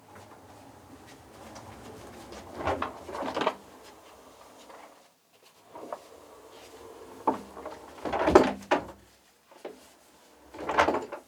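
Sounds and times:
object moving on rolls: 0:00.0 - 0:08.8.

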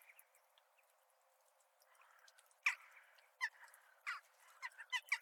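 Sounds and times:
crows chattering and cawing: 0:01.9 - 0:05.1.

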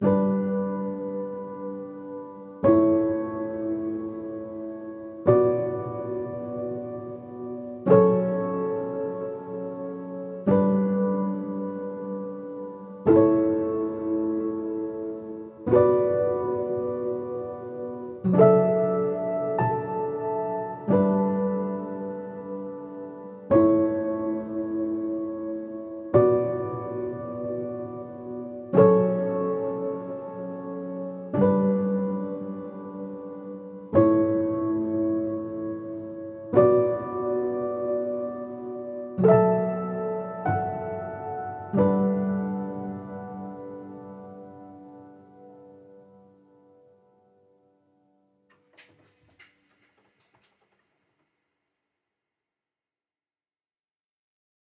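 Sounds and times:
cinematic emotional piano music in D major: 0:00.0 - 0:49.8.

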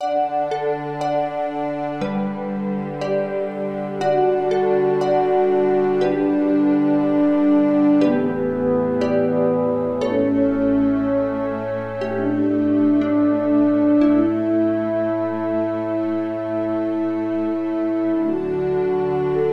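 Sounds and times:
outro music: 0:00.0 - 0:19.4.

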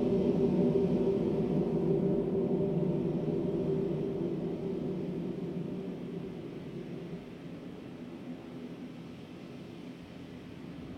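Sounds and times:
space wind: 0:00.0 - 0:08.6.

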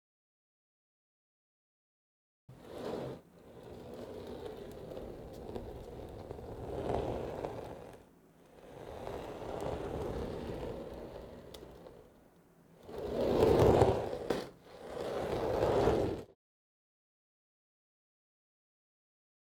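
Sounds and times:
luggage bag: 0:02.6 - 0:08.0, 0:08.6 - 0:12.2, 0:12.8 - 0:16.3.

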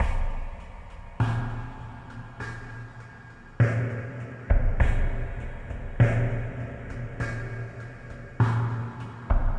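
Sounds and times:
drums: 0:00.0 - 0:09.5.

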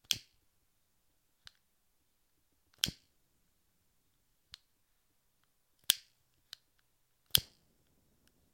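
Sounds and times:
lighter flicking: 0:02.8 - 0:03.1, 0:07.3 - 0:07.6.

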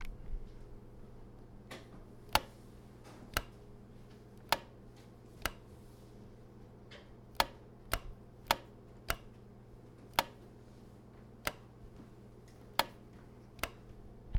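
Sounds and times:
light switch click: 0:02.2 - 0:02.6, 0:03.3 - 0:03.7, 0:04.4 - 0:04.8, 0:05.4 - 0:05.7, 0:07.3 - 0:09.4, 0:10.1 - 0:10.5, 0:11.4 - 0:11.8, 0:12.6 - 0:14.0.

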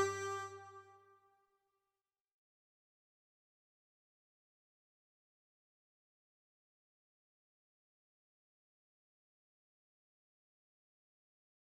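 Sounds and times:
funky brass instrumental: 0:00.0 - 0:00.9.

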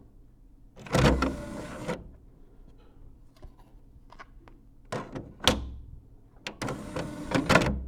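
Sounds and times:
DVD being inserted: 0:01.0 - 0:02.0, 0:06.6 - 0:07.8.

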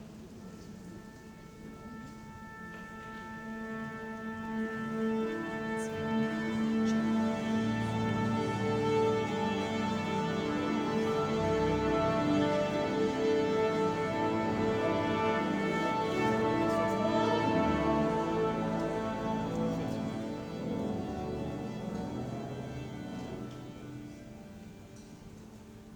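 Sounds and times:
orchestra tuning to concert pitch: 0:00.0 - 0:25.9.

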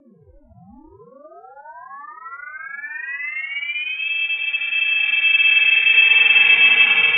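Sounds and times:
alien space sound: 0:02.5 - 0:07.1.

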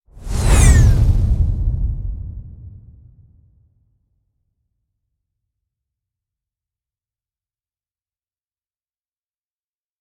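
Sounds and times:
spaceship flying by whoosh: 0:00.1 - 0:03.4.

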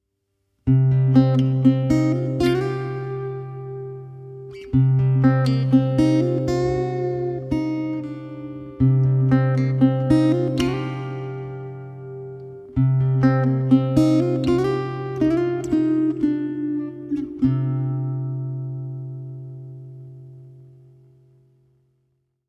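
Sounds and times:
fingerstyle acoustic guitar melody: 0:00.6 - 0:21.8.

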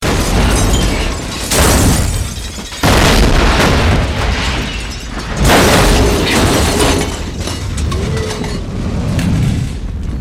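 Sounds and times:
car explosion: 0:00.0 - 0:07.8
debris from car explosion: 0:00.0 - 0:10.1.

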